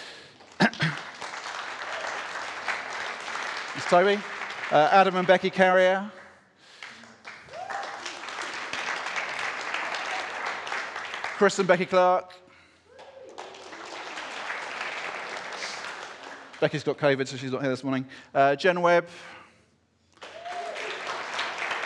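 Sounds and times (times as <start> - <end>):
audience round of applause: 0.0 - 5.9, 6.8 - 12.0, 12.9 - 16.9, 20.2 - 21.8
speech: 3.8 - 6.2, 11.4 - 12.4, 16.6 - 19.4.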